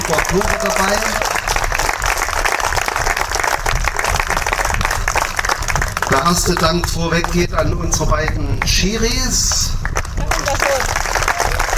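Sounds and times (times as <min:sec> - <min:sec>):
crowd applauding: 0:00.0 - 0:11.7
speech: 0:00.1 - 0:01.3, 0:06.3 - 0:09.8.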